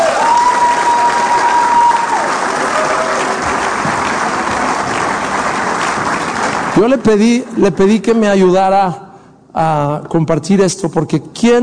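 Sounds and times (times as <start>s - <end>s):
audience applause: 0.0s - 7.1s
speech: 6.8s - 11.6s.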